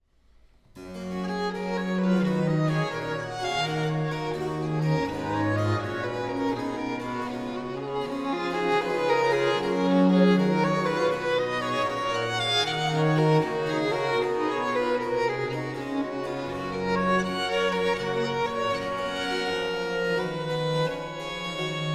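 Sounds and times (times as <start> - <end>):
orchestra: 0.8 - 21.9.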